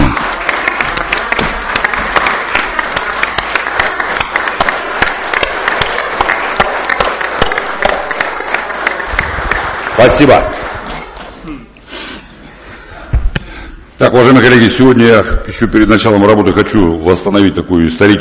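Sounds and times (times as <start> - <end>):
audience applause: 0.0 - 11.4
speech: 10.0 - 10.6, 14.1 - 18.2.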